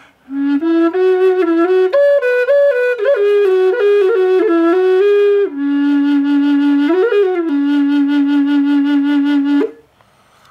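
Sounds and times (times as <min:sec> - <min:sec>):
dry flute playing in D minor: 0:00.2 - 0:09.9.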